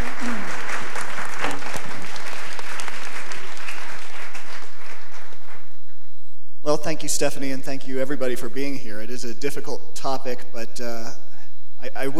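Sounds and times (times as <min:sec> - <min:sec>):
audience clapping: 0:00.0 - 0:05.9
speech: 0:07.0 - 0:12.1.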